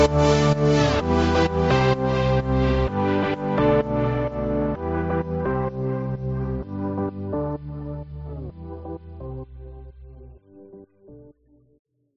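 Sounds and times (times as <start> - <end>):
happy travel pop music: 0.0 - 8.0.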